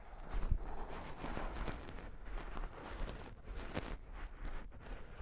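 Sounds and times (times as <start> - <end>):
microphone brushed with soft fabric: 0.2 - 5.0.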